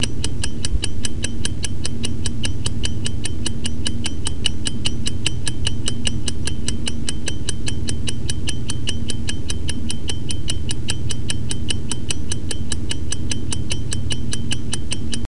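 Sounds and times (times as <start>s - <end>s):
cylinder clock ticking: 0.0s - 15.2s.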